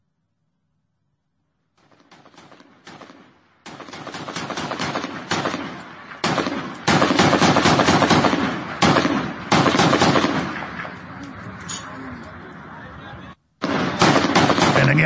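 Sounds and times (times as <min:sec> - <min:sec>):
small arms fire aimed at helicopters: 0:01.8 - 0:11.1, 0:13.6 - 0:15.0.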